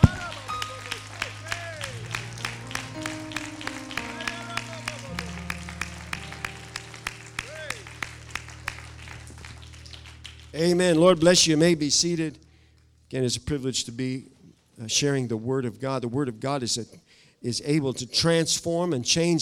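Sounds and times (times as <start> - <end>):
audience clapping hands in a steady beat: 0.0 - 11.6
sustained keyboard chords: 0.0 - 12.5
speech: 10.6 - 12.4, 13.1 - 19.4.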